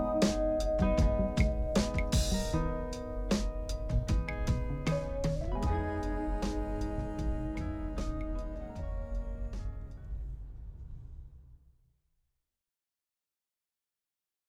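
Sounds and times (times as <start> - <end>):
limousine ambience: 0.0 - 10.4.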